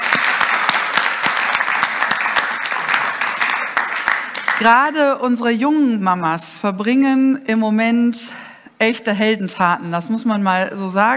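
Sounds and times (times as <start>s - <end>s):
crowd big round of applause: 0.0s - 4.8s
speech: 4.6s - 11.1s.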